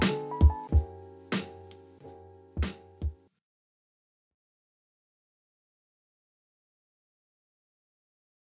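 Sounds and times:
chill music reminiscent of 90s jazz and hip-hop records: 0.0 - 3.1.

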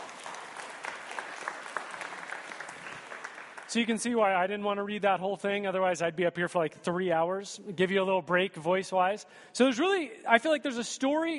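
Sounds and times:
round of applause: 0.0 - 4.2
speech: 3.7 - 11.3.

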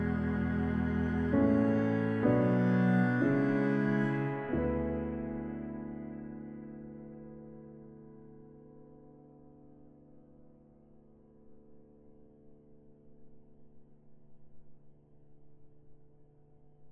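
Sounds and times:
sad music cue trio mix: 0.0 - 9.2.

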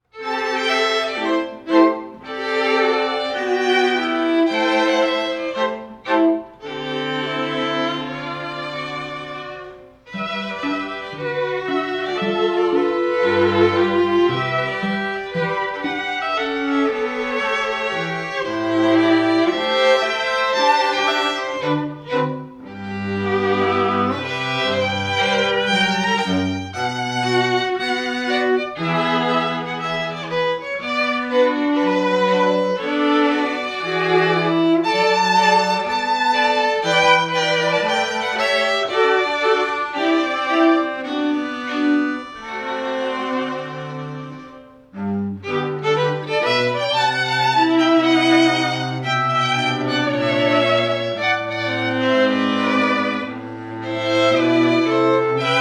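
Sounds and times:
strings: 0.0 - 55.6.

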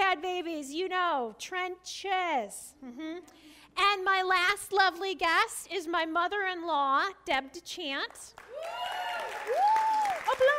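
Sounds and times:
speech: 1.2 - 10.5
applause: 8.3 - 10.5.

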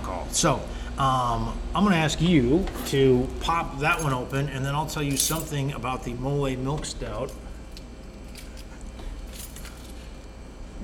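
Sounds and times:
speech: 0.3 - 7.4
keys rattling: 2.7 - 5.6, 8.2 - 10.2.

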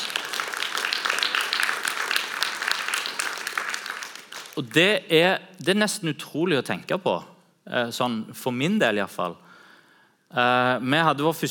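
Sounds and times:
crowd applauding: 0.0 - 4.9
speech: 4.6 - 9.5, 10.3 - 11.4.

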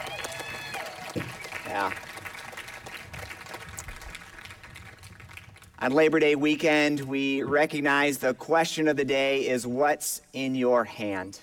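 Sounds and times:
audience round of applause: 0.0 - 5.8
speech: 1.7 - 2.1, 5.8 - 11.4.

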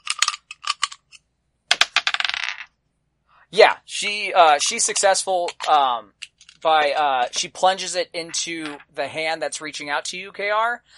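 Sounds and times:
dice clattering across a hard surface: 0.0 - 2.7
speech: 3.5 - 10.9.

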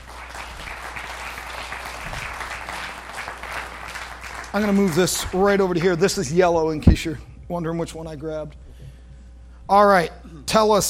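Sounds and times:
audience applause for missionaries: 0.0 - 6.0
speech: 4.5 - 8.6, 9.7 - 10.8.

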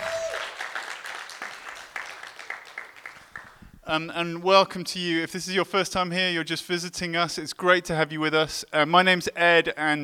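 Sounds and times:
audience applause: 0.0 - 3.6
speech: 3.9 - 10.0.

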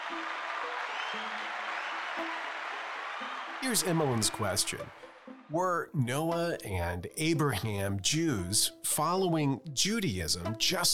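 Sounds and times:
group applauding: 0.0 - 5.5
speech: 3.6 - 10.9.

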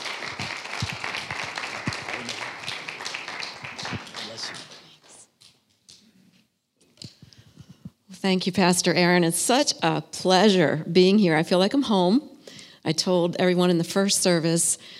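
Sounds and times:
church congregation applause welcoming a woman speaker: 0.0 - 5.3
speech: 8.2 - 14.9.

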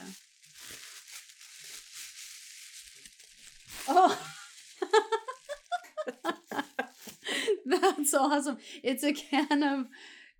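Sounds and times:
wrapping of a mailed gift crinkling and tearing: 0.0 - 7.4
speech: 3.9 - 4.3, 8.0 - 10.2.

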